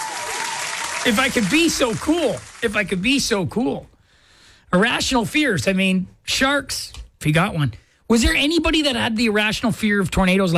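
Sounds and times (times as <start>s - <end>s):
round of applause: 0.0s - 3.0s
speech: 1.0s - 3.9s, 4.7s - 10.5s.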